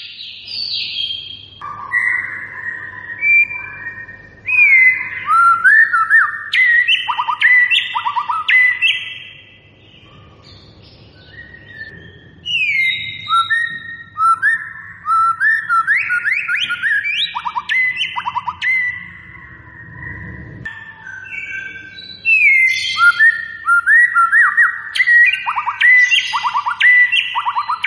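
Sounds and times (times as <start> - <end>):
white-rumped shama singing whistles and buzzy notes: 0.0 - 27.8.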